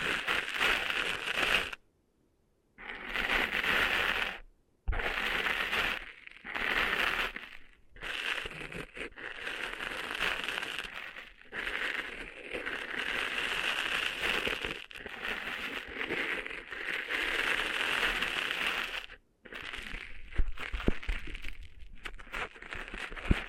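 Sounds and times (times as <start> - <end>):
cleaning sand out of ears, scratchy crackling and rustling: 0.0 - 1.8, 2.8 - 23.4.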